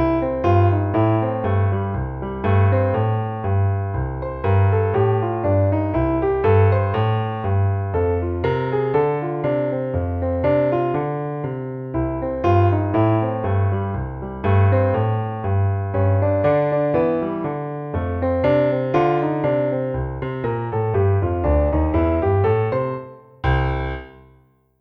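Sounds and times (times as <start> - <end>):
solo boogie piano: 0.0 - 24.4.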